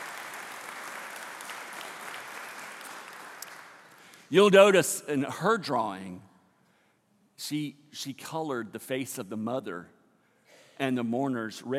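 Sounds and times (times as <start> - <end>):
audience applause: 0.0 - 4.3
speech: 4.3 - 6.3, 7.4 - 10.0, 10.8 - 11.7.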